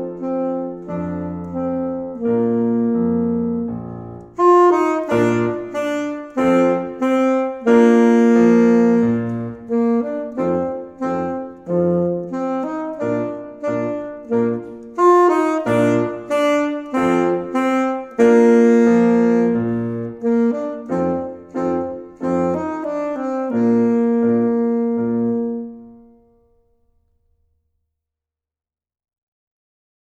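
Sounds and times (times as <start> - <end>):
saxophone playing: 0.0 - 26.3.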